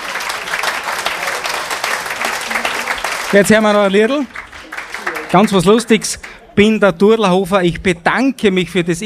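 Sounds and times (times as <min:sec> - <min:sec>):
audience applause: 0:00.0 - 0:06.4
speech: 0:03.3 - 0:04.4, 0:05.3 - 0:09.0.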